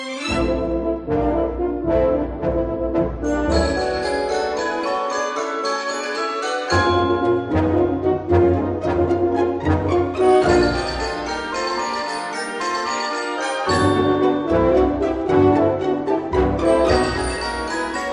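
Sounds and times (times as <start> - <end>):
trombones: 0.3 - 5.4, 6.7 - 18.1.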